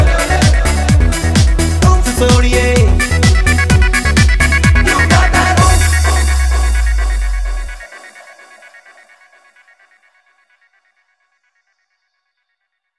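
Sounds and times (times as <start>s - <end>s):
remix music: 0.0s - 9.6s.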